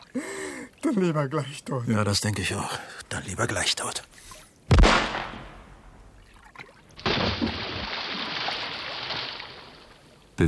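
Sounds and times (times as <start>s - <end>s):
speech: 0.2s - 4.0s
body splashing into water: 6.2s - 10.0s.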